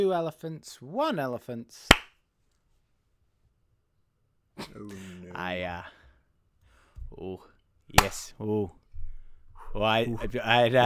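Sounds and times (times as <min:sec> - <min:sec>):
speech: 0:00.0 - 0:02.0, 0:04.6 - 0:06.0, 0:07.1 - 0:08.8, 0:09.7 - 0:10.8
hand clap for audio sync: 0:08.0 - 0:08.3.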